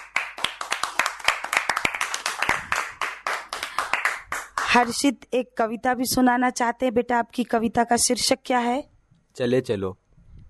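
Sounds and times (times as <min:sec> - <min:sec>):
group of children clapping loudly: 0:00.0 - 0:04.8
speech: 0:04.7 - 0:10.0.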